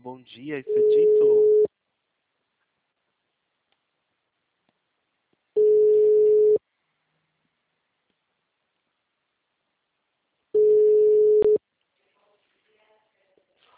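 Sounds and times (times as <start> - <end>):
speech: 0.2 - 1.5
telephone ringing tone on an outgoing call: 0.7 - 1.7, 5.6 - 6.6, 10.6 - 11.6.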